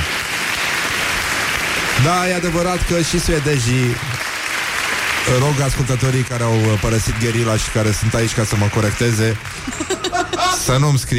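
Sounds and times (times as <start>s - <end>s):
applause: 0.0s - 9.9s
speech: 2.0s - 4.2s, 5.2s - 10.0s, 10.6s - 11.1s
laughter: 9.5s - 10.9s.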